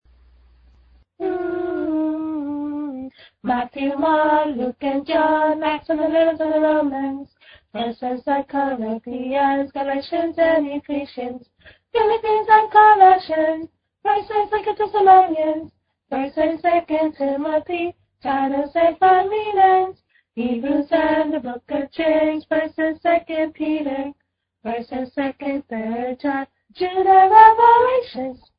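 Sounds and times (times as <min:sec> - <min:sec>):
educational song: 0:01.2 - 0:28.5.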